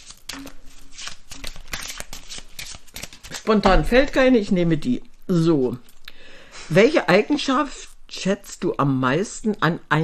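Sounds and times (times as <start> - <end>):
deck of question cards shuffled by hand: 0.0 - 4.9
speech: 3.5 - 5.9, 6.7 - 10.0.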